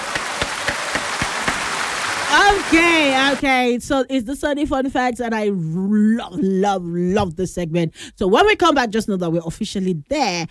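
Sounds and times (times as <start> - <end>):
applause sound effect: 0.0 - 3.4
speech: 2.5 - 10.5.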